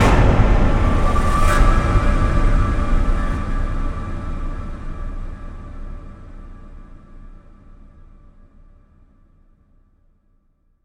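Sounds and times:
explosion: 0.0 - 4.5.

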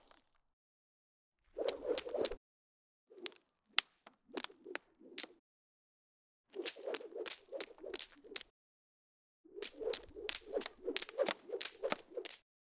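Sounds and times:
whipping: 1.6 - 2.4, 6.6 - 8.5, 9.6 - 12.4.

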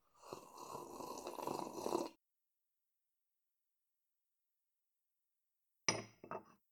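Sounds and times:
sipping: 0.1 - 2.2.

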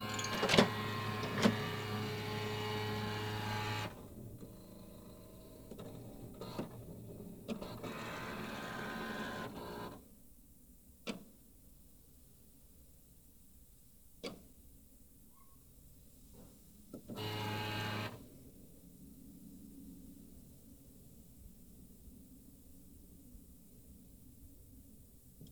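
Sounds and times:
printer setting up: 0.0 - 10.0, 17.1 - 18.2.

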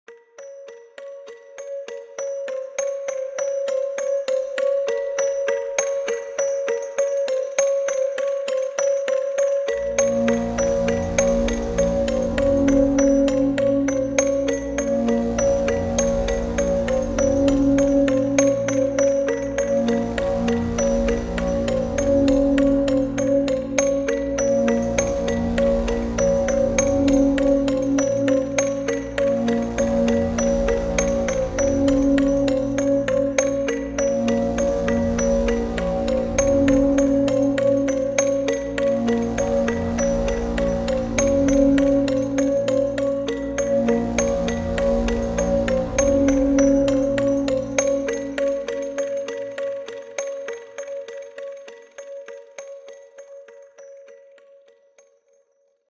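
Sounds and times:
creepy background music: 0.1 - 54.8.

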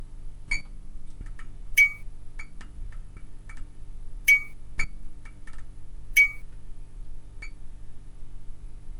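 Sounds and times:
fluorescent light flickering: 1.8 - 2.0, 4.3 - 4.6, 6.2 - 6.4.

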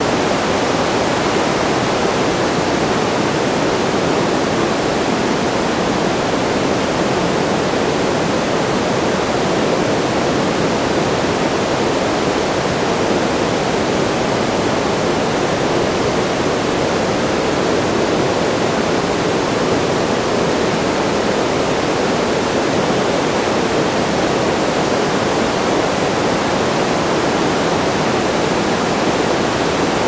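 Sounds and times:
flowing water: 0.0 - 30.0.

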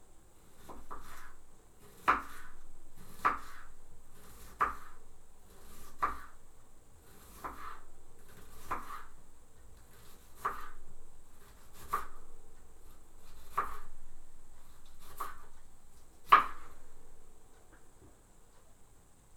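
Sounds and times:
knife slicing vegetables: 0.4 - 6.4, 7.0 - 9.2, 9.8 - 12.2, 12.8 - 13.9, 14.6 - 15.5, 16.2 - 16.8.

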